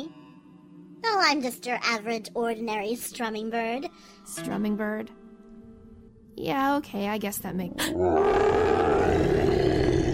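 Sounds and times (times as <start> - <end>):
speech: 1.2 - 5.2, 6.4 - 8.8
monster roar of the Jabberwock: 7.9 - 10.1.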